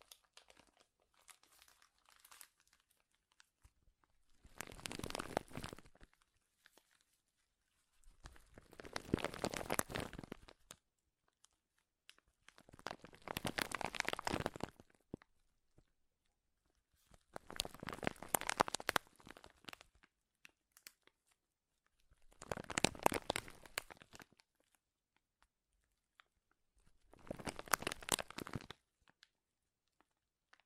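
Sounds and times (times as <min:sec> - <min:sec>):
loud crinkling: 0:04.4 - 0:06.0, 0:08.2 - 0:10.5, 0:12.6 - 0:14.9, 0:17.3 - 0:19.8, 0:22.3 - 0:24.3, 0:27.1 - 0:28.8.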